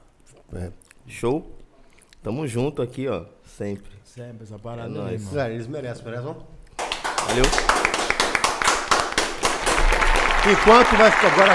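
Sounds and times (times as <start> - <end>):
speech: 0.3 - 1.6, 2.2 - 6.6, 7.3 - 7.9, 10.4 - 11.5
many hands clapping: 6.7 - 11.5
overlapping cheering voices: 9.8 - 11.5.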